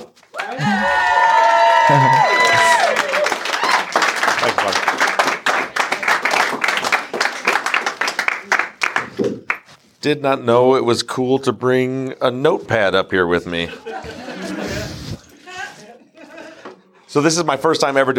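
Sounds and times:
loud audience applause: 0:00.0 - 0:09.6
cheers and whoops: 0:00.3 - 0:04.2
speech: 0:01.9 - 0:02.4, 0:10.0 - 0:13.9, 0:17.2 - 0:18.1
laughter: 0:13.6 - 0:16.9.

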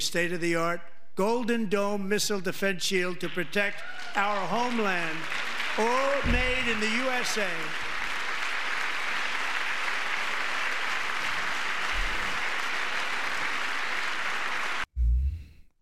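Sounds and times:
speech: 0:00.0 - 0:07.9
large audience clapping in Congress: 0:03.3 - 0:14.9.

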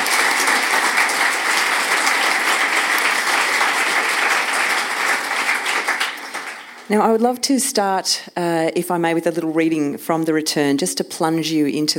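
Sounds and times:
audience applause welcoming a guest author at a literary evening: 0:00.0 - 0:06.9
speech: 0:06.9 - 0:11.9.

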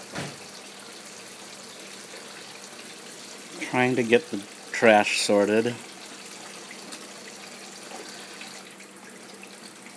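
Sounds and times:
water running while washing dishes in sink: 0:00.0 - 0:09.9
speech: 0:03.6 - 0:05.9.

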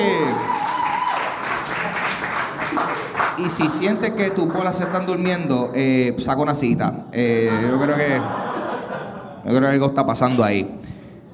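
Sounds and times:
audience applause: 0:00.0 - 0:05.6
speech: 0:03.4 - 0:08.4, 0:09.5 - 0:10.8
laughter: 0:07.2 - 0:10.6.

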